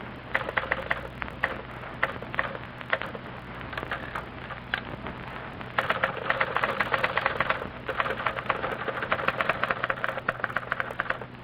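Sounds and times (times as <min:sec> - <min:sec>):
low steady hum: 0:00.0 - 0:11.4
typewriters clattering as two typists type letters: 0:00.3 - 0:03.2, 0:03.8 - 0:04.3, 0:05.8 - 0:11.3.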